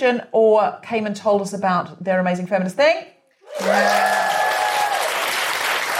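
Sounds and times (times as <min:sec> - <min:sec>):
speech: 0:00.0 - 0:04.4
applause: 0:03.4 - 0:05.9.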